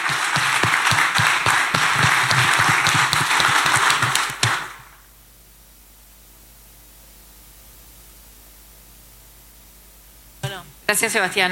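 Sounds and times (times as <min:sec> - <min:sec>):
crowd applause: 0:00.0 - 0:05.0
speech: 0:10.9 - 0:11.5.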